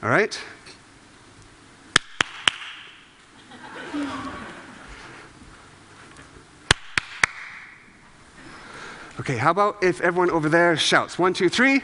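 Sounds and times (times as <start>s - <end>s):
speech: 0.0s - 0.6s, 9.2s - 11.8s
hand clapping: 2.0s - 3.0s, 6.7s - 7.8s
laughter: 3.4s - 5.2s.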